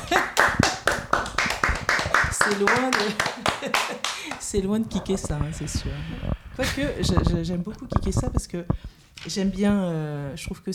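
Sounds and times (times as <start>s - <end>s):
laughter: 0.0s - 0.9s, 2.9s - 4.4s
clapping: 0.0s - 4.5s
speech: 2.5s - 3.8s, 4.5s - 10.7s.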